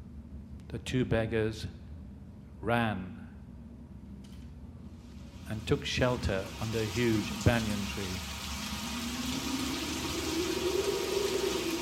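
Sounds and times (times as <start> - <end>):
speech: 0.7 - 1.8, 2.6 - 3.2, 5.5 - 8.3
heavy rain downpour: 5.6 - 11.8.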